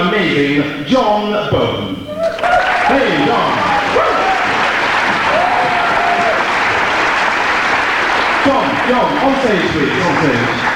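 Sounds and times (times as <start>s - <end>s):
speech: 0.0s - 2.0s, 8.9s - 10.7s
audience applause: 2.1s - 10.7s.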